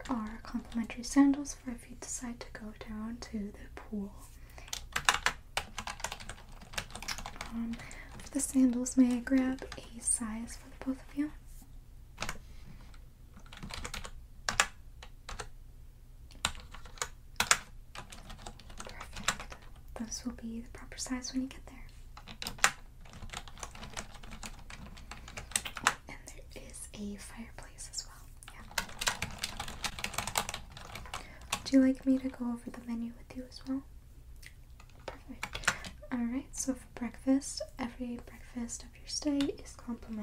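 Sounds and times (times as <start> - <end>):
soft-spoken voice talking quietly: 0.0 - 4.3, 7.5 - 11.4, 20.0 - 21.9, 26.1 - 28.8, 31.6 - 33.9, 36.0 - 40.2
speech: 0.5 - 4.4, 7.5 - 11.4, 20.2 - 21.7, 27.0 - 28.0, 31.7 - 33.9, 36.1 - 40.2
computer keyboard typing: 4.6 - 10.0, 13.4 - 15.5, 16.3 - 19.8, 22.2 - 26.0, 28.5 - 32.3, 34.8 - 36.0.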